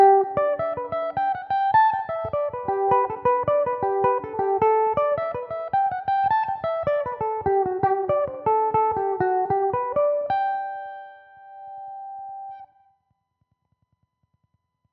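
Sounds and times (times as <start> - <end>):
Irish mandolin jig in G major: 0.0 - 11.9.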